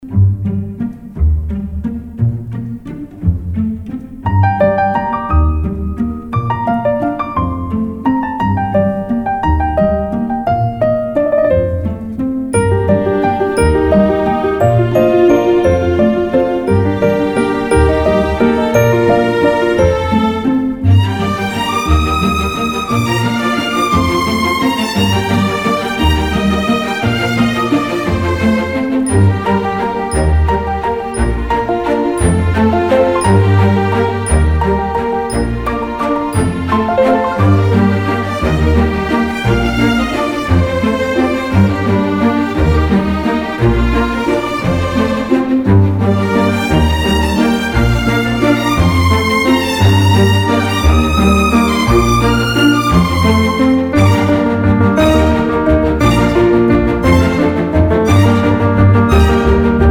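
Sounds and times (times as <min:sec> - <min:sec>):
simple and graceful orchestral music: 0:00.0 - 0:59.8.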